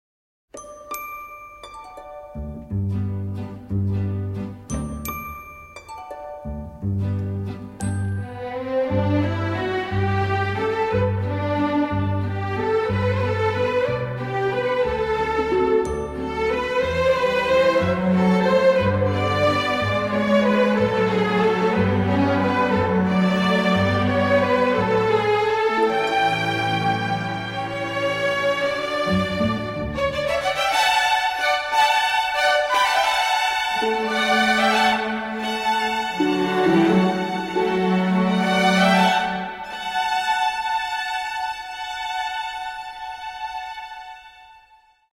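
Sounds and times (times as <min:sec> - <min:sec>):
string orchestra waltz: 0:02.0 - 0:44.8.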